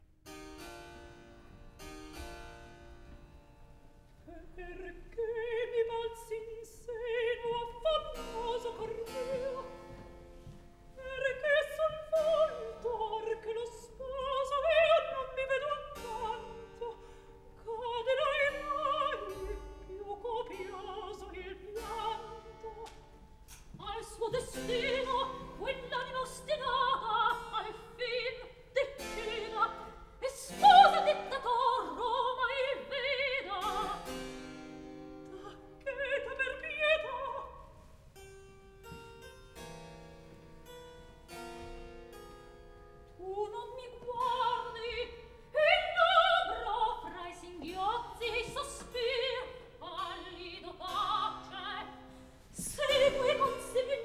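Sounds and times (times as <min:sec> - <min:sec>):
opera recitative: 0:04.2 - 0:34.3, 0:35.2 - 0:37.8, 0:43.2 - 0:54.0.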